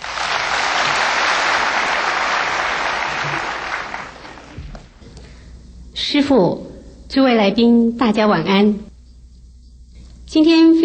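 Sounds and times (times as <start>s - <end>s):
audience applause: 0.0s - 4.9s
speech: 6.1s - 8.9s, 10.3s - 10.8s.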